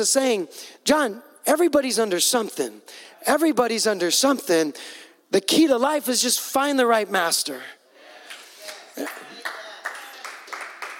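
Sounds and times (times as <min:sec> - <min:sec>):
speech: 0:00.0 - 0:07.8, 0:09.0 - 0:09.3
audience clapping: 0:08.2 - 0:10.9.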